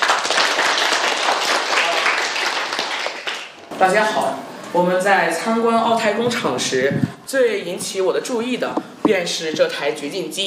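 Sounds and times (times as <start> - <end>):
audience applause: 0.0 - 3.6
speech: 3.8 - 10.4.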